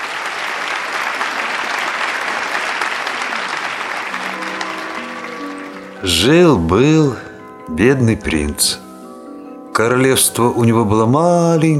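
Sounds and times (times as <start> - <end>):
audience applause: 0.0 - 6.9
speech: 6.0 - 8.8, 9.8 - 11.7.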